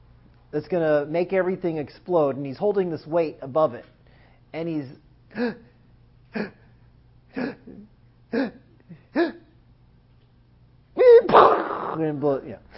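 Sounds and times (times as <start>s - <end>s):
speech: 0.5s - 5.7s, 6.3s - 6.6s, 7.4s - 9.3s, 12.0s - 12.7s
voice imitating gasping of a dying person: 5.3s - 5.7s, 6.3s - 9.5s, 11.0s - 12.1s.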